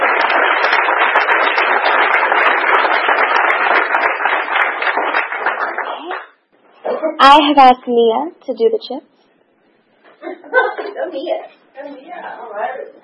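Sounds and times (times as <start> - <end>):
group applauding: 0.0 - 6.4
speech: 7.2 - 9.1, 11.1 - 12.8
laughter: 10.1 - 11.1.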